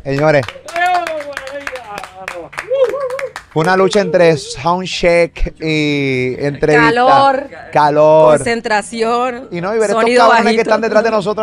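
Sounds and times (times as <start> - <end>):
speech: 0.0 - 0.6, 3.6 - 11.4
audience handclaps: 0.0 - 4.0
voice cheering: 0.6 - 4.7.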